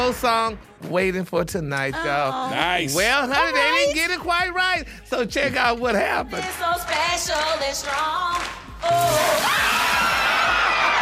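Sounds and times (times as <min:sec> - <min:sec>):
speech: 0:00.0 - 0:09.7
water spraying and splashing onto contestants in a karaoke game: 0:08.9 - 0:10.0.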